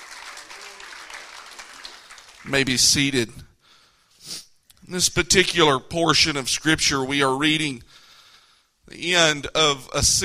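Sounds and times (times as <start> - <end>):
crowd clapping: 0.0 - 3.0
speech: 2.4 - 3.5, 4.3 - 8.0, 8.9 - 10.2.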